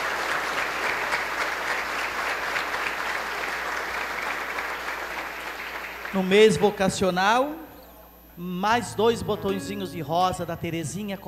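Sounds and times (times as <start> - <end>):
applause welcoming new altar servers: 0.0 - 6.4
speech: 6.1 - 7.6, 8.4 - 11.2.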